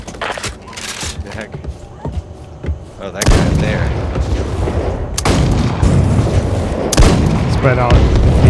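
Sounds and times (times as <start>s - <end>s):
roaring rumble in a video game: 1.3s - 8.4s
speech: 1.4s - 1.6s, 3.0s - 4.0s, 7.6s - 8.3s
video game bomb exploding: 3.2s - 8.4s.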